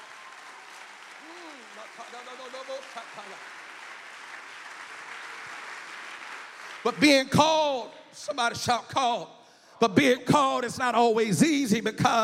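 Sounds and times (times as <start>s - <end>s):
audience clapping hands: 0.0s - 7.8s
speech: 6.8s - 12.2s.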